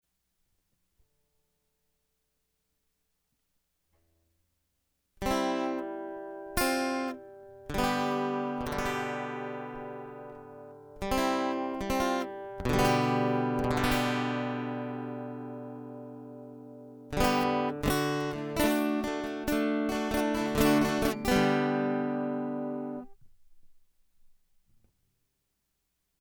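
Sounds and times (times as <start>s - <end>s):
guitar interlude: 5.2s - 23.2s.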